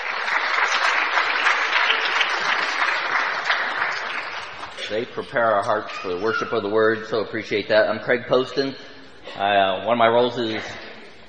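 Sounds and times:
audience applause: 0:00.0 - 0:05.0
speech: 0:04.9 - 0:10.8.

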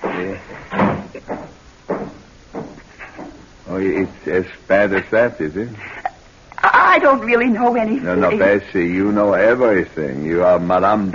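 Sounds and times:
door being shut: 0:00.0 - 0:03.4
speech: 0:03.8 - 0:05.9, 0:06.9 - 0:11.1.

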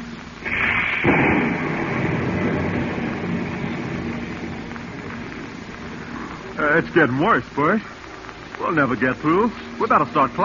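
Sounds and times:
storm roar: 0:00.4 - 0:07.0
thunder of a heavy storm: 0:00.4 - 0:07.0
speech: 0:06.8 - 0:08.0, 0:08.6 - 0:10.4.

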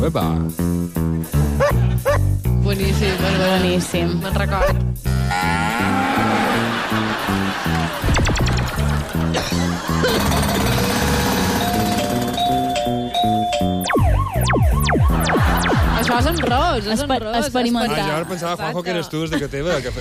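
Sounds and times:
speech: 0:00.0 - 0:05.6, 0:09.3 - 0:11.2, 0:16.1 - 0:20.0
laughter: 0:02.8 - 0:04.3, 0:05.8 - 0:11.2, 0:19.1 - 0:20.0
electronic keyboard playing preset sounds: 0:06.7 - 0:17.1.

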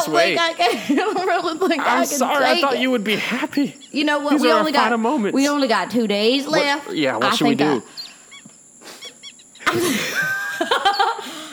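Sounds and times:
laughter: 0:00.0 - 0:03.1, 0:09.1 - 0:11.5
speech: 0:00.1 - 0:08.0, 0:09.7 - 0:11.0
person sniffling: 0:08.8 - 0:10.3.

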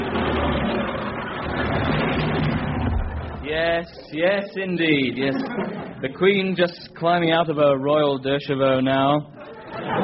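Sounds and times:
car pulling up with low engine rumble: 0:00.0 - 0:04.6
road and crowd noise: 0:00.0 - 0:06.3
speech: 0:03.6 - 0:10.0
laughter: 0:09.4 - 0:10.0.

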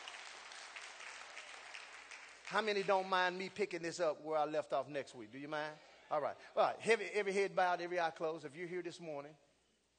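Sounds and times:
audience hand clapping: 0:00.0 - 0:03.4
speech: 0:02.5 - 0:09.4.

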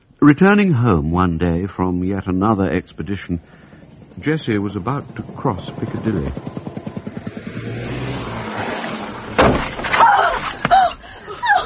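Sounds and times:
speech: 0:00.2 - 0:03.6, 0:04.2 - 0:06.6
car engine throbbing: 0:01.0 - 0:10.6
car hitting a pedestrian: 0:09.3 - 0:10.0
people crying out: 0:09.9 - 0:11.6.

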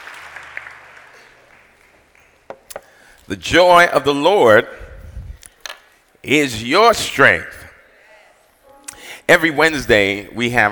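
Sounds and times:
audience hand clapping: 0:00.0 - 0:02.5
speech: 0:03.3 - 0:04.8, 0:06.2 - 0:07.6, 0:09.3 - 0:10.7.

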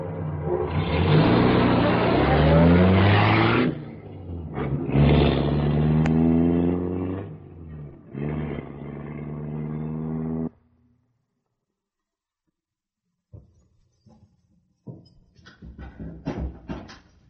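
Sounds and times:
car engine pulling away and shifting gears: 0:00.0 - 0:10.6.

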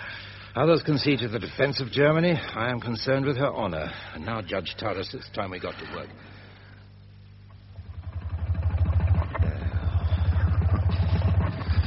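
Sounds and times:
speech: 0:00.6 - 0:06.4
wood-fuelled car engine chugging and sputtering: 0:07.6 - 0:11.8.

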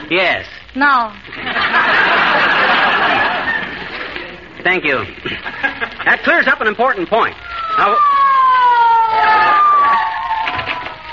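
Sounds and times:
speech: 0:00.1 - 0:02.1, 0:04.6 - 0:08.2
laughter: 0:01.3 - 0:04.4, 0:05.2 - 0:06.4
police squad car siren wailing: 0:07.4 - 0:11.1.

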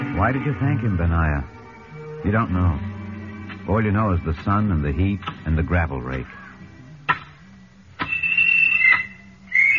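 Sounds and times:
speech: 0:00.2 - 0:01.5, 0:02.2 - 0:02.9, 0:03.7 - 0:06.4
work-stop whistle: 0:08.0 - 0:09.7.

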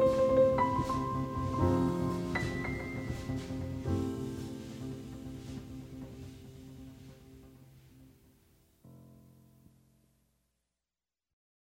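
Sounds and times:
instrumental music: 0:00.0 - 0:09.3.

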